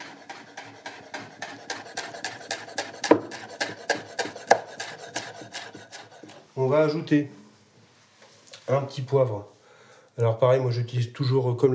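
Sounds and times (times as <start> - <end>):
knife finely mincing rolled basil leaves on a cutting board: 0.0 - 6.5
speech: 6.6 - 7.4, 8.7 - 9.5, 10.2 - 11.7.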